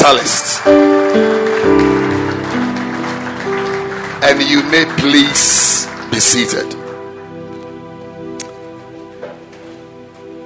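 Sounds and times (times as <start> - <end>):
audience clapping: 0.0 - 7.1
speech: 0.1 - 1.8, 4.3 - 6.9.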